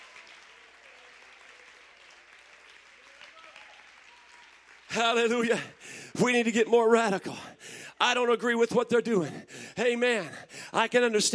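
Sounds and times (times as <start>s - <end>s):
audience clapping: 0.0s - 6.5s
speech: 5.0s - 11.3s.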